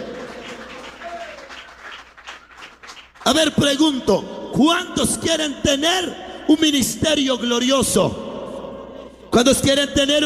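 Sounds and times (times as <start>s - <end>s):
audience applause: 0.0s - 3.3s
speech: 3.3s - 8.2s, 9.3s - 10.2s.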